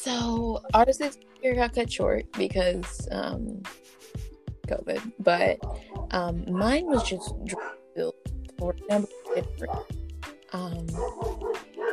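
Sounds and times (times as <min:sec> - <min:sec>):
speech: 0:00.0 - 0:04.0, 0:04.7 - 0:11.5
dog barking, yipping and whining: 0:05.6 - 0:07.8, 0:11.0 - 0:11.9.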